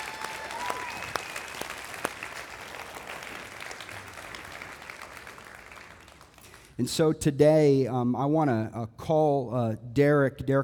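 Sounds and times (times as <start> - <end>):
audience applauding: 0.0 - 6.8
speech: 6.8 - 10.6.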